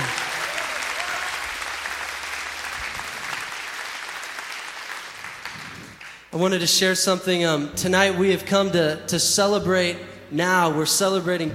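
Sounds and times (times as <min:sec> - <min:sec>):
audience clapping: 0:00.0 - 0:06.3
speech: 0:06.4 - 0:11.5.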